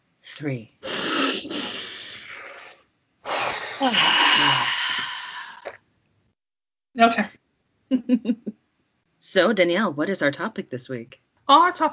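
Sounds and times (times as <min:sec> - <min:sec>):
speech: 0:00.4 - 0:00.8, 0:01.4 - 0:01.8, 0:03.8 - 0:04.7, 0:07.0 - 0:08.6, 0:09.3 - 0:11.9
group taking deep breaths: 0:03.2 - 0:05.7.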